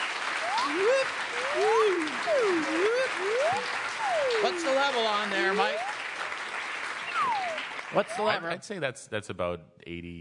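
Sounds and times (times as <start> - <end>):
audience applause: 0.0 - 8.6
speech: 0.7 - 5.9, 7.9 - 10.1.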